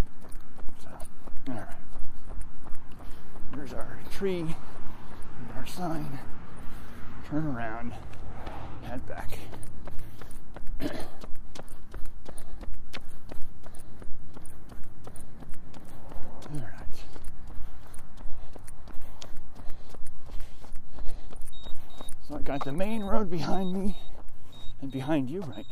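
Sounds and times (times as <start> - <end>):
footsteps walking along a road past a mailbox: 0.0 - 25.7
outdoor noise: 0.0 - 25.7
speech: 4.2 - 4.7, 5.7 - 6.4, 7.3 - 8.2, 8.9 - 9.7, 10.8 - 11.2, 22.5 - 24.1, 24.8 - 25.7.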